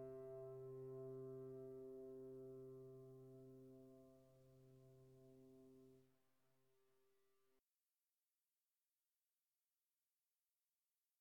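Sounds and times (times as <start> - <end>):
slow piano prelude: 0.0 - 6.0.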